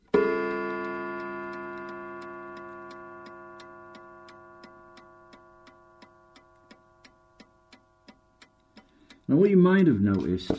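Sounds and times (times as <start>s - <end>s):
clock chime struck manually, ringing out: 0.0s - 8.4s
clock ticking: 0.0s - 10.5s
speech: 9.3s - 10.5s.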